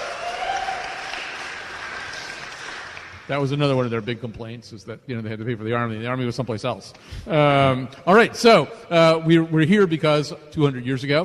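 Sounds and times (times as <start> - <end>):
audience applause: 0.0 - 3.5
speech: 3.3 - 11.2.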